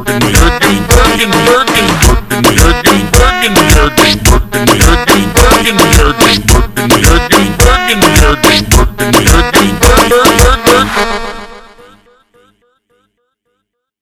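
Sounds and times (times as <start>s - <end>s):
slowed funk music: 0.0s - 11.2s.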